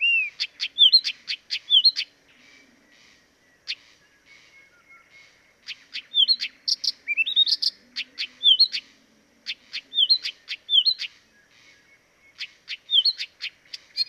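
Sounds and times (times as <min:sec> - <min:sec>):
Blyth's reed warbler song, Acrocephalus dumetorum: 0:00.0 - 0:14.0.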